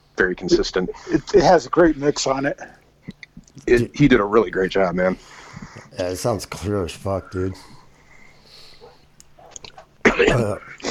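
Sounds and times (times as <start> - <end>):
speech: 0.2 - 2.8, 3.6 - 7.8, 10.2 - 10.8
harsh coughing: 10.0 - 10.8.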